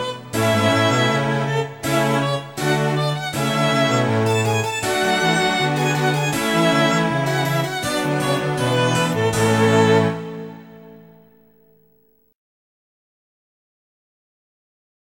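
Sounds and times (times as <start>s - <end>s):
classical theme music: 0.0s - 11.9s.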